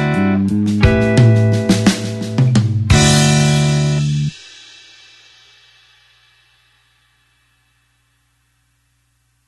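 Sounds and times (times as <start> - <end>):
slow blues backing track: 0.0 - 4.4.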